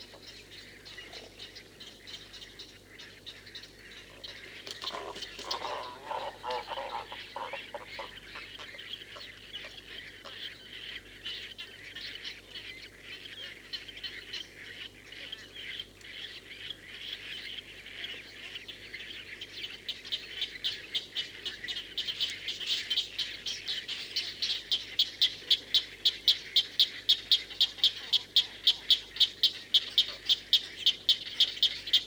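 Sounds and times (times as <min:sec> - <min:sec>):
white heron song: 0:00.0 - 0:11.5, 0:18.1 - 0:32.0.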